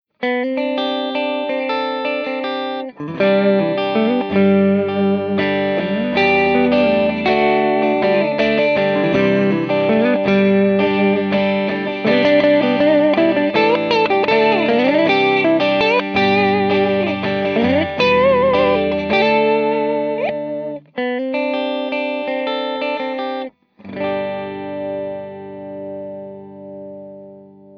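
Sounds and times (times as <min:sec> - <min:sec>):
clean Les Paul electric guitars through TinyTerror amplifier: 0:00.1 - 0:27.7.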